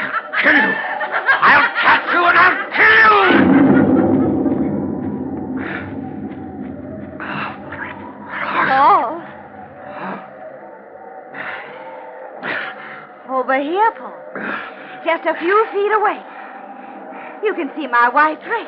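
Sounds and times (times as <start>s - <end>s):
laughter: 0.0s - 4.7s
speech: 0.4s - 0.9s, 15.3s - 16.3s, 17.5s - 18.6s
thunderstorm: 2.8s - 11.0s.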